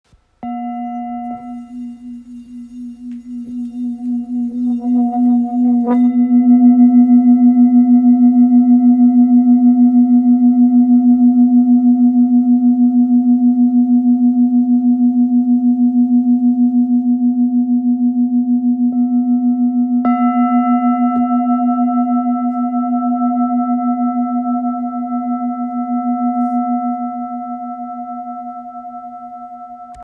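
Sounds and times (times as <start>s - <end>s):
Tibetan singing bowl in full moon B: 0.4s - 30.0s.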